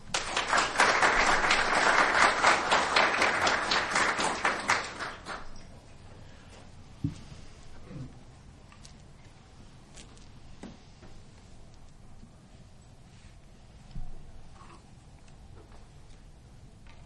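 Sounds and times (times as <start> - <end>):
audience applause welcoming a speaker: 0.0 - 5.6.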